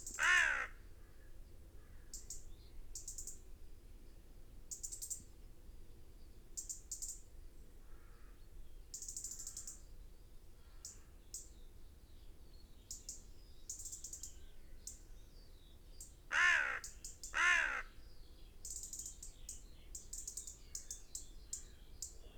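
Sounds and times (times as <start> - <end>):
European robin ticking calls: 0.0 - 0.8, 1.8 - 3.4, 8.9 - 9.8, 12.9 - 15.1, 16.0 - 18.0, 18.6 - 22.3.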